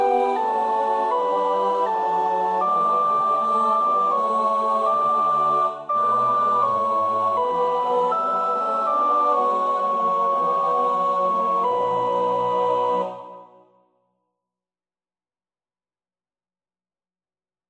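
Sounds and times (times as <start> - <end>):
soprano practising a choir part: 0.0 - 13.6.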